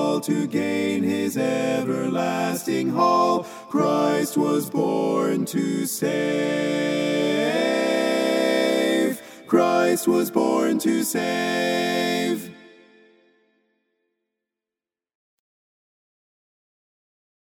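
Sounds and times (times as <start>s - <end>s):
tenor singing a carol: 0.0s - 13.0s.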